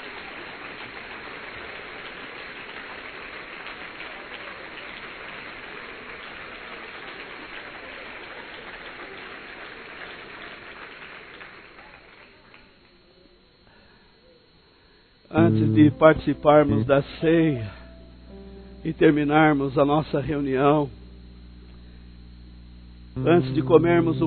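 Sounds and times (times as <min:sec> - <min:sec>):
audience applause: 0:00.0 - 0:12.7
speech: 0:15.3 - 0:17.8, 0:18.8 - 0:21.0, 0:23.2 - 0:24.2.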